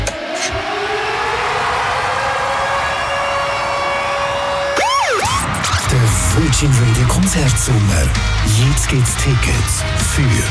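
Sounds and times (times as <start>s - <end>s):
radio contest alarm siren wailing and yelping: 0.1s - 6.0s
speech: 6.5s - 10.4s.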